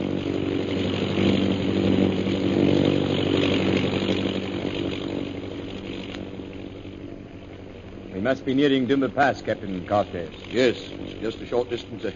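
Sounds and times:
airplane approaching Dumba Pass: 0.0s - 12.1s
speech: 8.3s - 12.1s.

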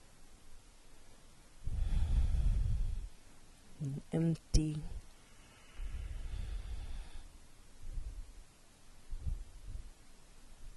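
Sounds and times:
deep breath during a guided breathing exercise: 1.6s - 3.2s, 5.2s - 8.2s
speech: 3.8s - 5.0s.

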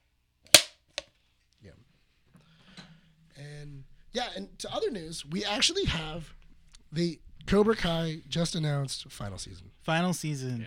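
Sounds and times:
hand clap for camera sync: 0.6s - 1.0s
speech: 4.2s - 10.6s.

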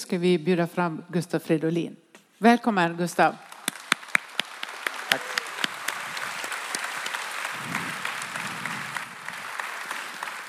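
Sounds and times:
speech: 0.1s - 3.5s
audience applause: 3.6s - 10.4s.

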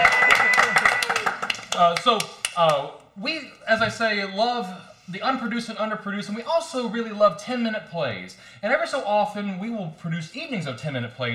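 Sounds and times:
hands clapping: 0.0s - 2.9s
speech: 1.8s - 11.3s.

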